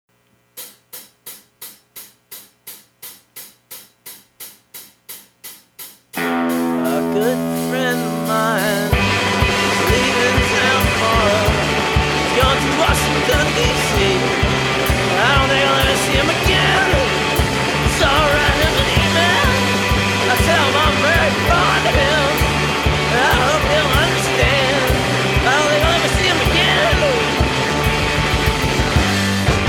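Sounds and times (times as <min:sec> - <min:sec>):
karaoke singing: 0:06.2 - 0:29.6.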